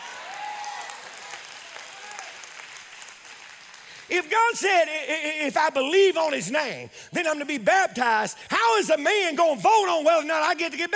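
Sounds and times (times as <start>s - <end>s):
audience clapping: 0.0s - 4.2s
speech: 4.1s - 10.9s.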